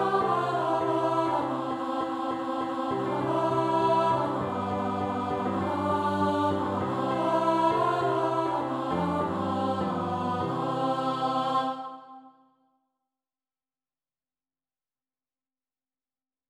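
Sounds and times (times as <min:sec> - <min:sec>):
alto voice singing a carol: 0:00.0 - 0:12.2.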